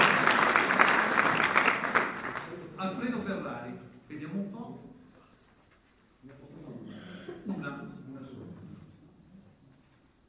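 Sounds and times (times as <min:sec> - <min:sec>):
applause: 0:00.0 - 0:02.7.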